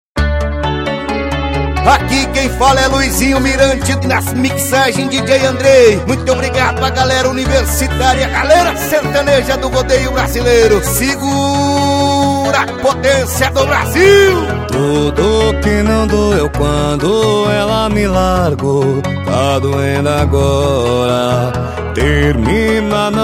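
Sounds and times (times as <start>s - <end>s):
sertanejo music: 0.2s - 23.2s
rodeo announcers speaking: 1.8s - 15.5s.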